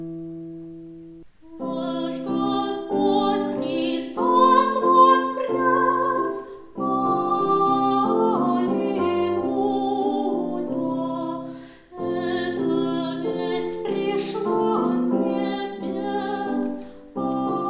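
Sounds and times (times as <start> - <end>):
tenor singing: 1.4 - 17.6.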